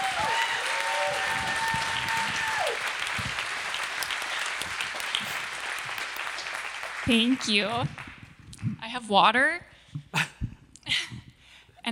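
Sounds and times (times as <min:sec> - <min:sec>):
audience applause: 0:00.0 - 0:08.4
speech: 0:07.1 - 0:08.0, 0:08.9 - 0:09.7.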